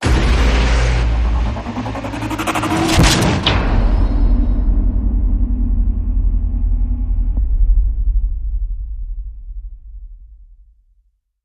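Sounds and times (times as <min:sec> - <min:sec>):
hit: 0:00.0 - 0:08.8.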